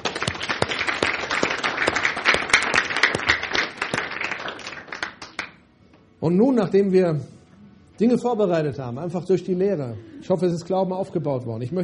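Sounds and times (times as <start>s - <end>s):
audience applause: 0.0s - 5.5s
speech: 6.2s - 7.3s, 8.0s - 11.8s.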